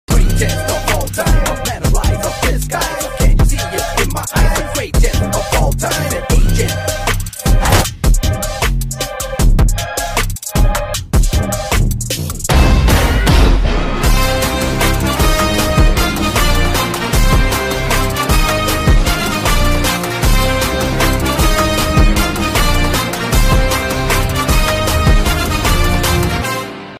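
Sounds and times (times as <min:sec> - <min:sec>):
trailer background music: 0:00.1 - 0:26.9.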